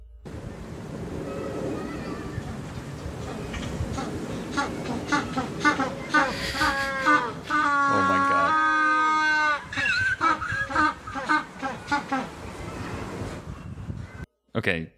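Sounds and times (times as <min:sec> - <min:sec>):
other penguins honking and squawking: 0:01.3 - 0:13.2
penguin ecstatic display song with braying honks and trumpeting call: 0:03.9 - 0:12.3
speech: 0:14.6 - 0:14.9.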